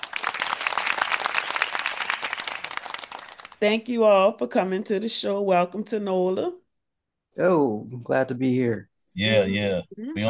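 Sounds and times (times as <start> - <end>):
audience applause: 0.0 - 3.6
speech: 3.6 - 6.6, 7.4 - 10.2.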